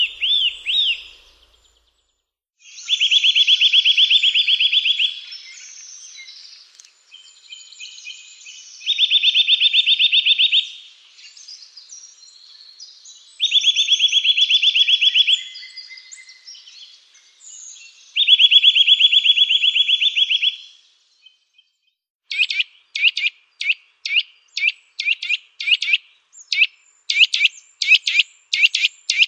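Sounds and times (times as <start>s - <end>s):
Eurasian nuthatch trills and calls: 0.0s - 1.8s, 2.7s - 21.4s, 22.3s - 29.2s
birds chirping softly: 0.0s - 29.2s.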